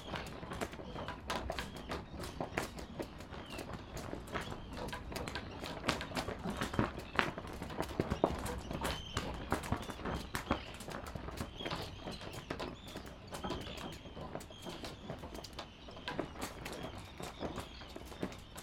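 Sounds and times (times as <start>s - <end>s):
flag flapping in wind: 0.0s - 18.6s.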